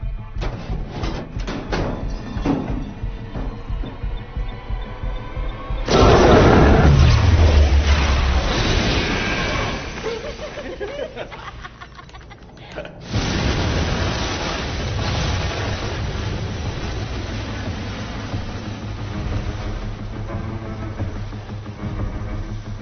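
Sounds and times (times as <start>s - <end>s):
low rumbling: 0.0s - 12.3s, 12.9s - 22.7s
stun grenade blast: 5.9s - 10.0s, 13.0s - 17.6s
laughter: 9.6s - 13.1s.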